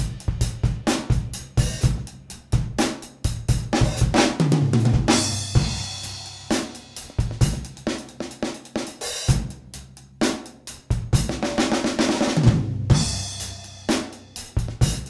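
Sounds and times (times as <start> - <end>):
funky drum groove with various influences: 0.0 - 15.0.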